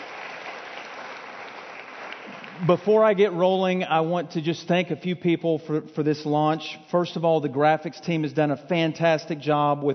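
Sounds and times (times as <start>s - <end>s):
audience hand clapping: 0.0s - 3.2s
speech: 2.6s - 9.9s.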